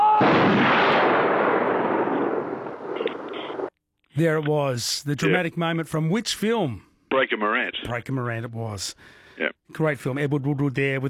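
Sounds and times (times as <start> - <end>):
firing squad rifle volley in a film execution scene: 0.0 - 3.7
speech: 4.2 - 11.0.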